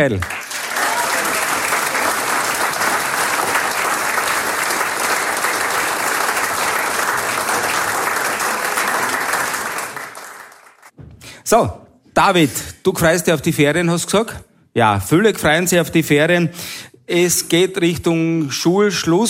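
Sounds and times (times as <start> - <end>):
speech: 0.0 - 0.4, 11.5 - 19.2
audience applause: 0.0 - 10.9.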